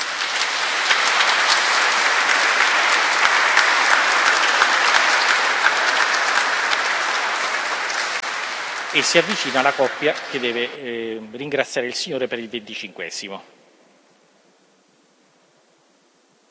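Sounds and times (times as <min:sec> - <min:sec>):
audience applauding: 0:00.0 - 0:11.3
speech: 0:09.0 - 0:13.6.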